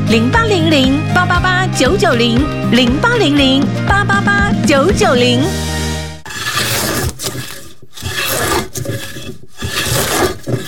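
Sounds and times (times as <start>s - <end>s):
speech: 0.1s - 5.8s
carving tool rasping across wood: 6.3s - 10.6s.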